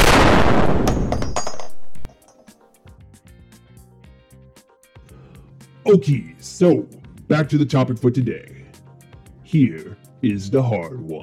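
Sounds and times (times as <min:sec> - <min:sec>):
fictional gun Mr Lathan firing a roaring crackling blast: 0:00.0 - 0:02.0
speech: 0:05.9 - 0:08.6, 0:09.5 - 0:11.2.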